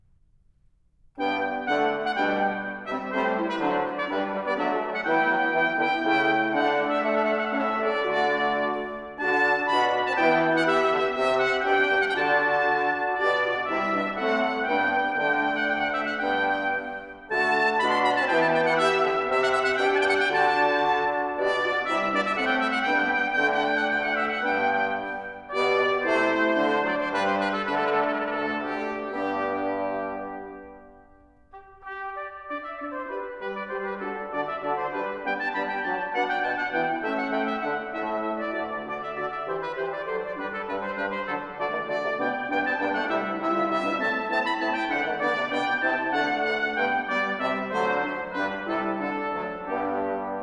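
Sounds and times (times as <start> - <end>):
brass ensemble playing a sonata: 1.2 - 50.4.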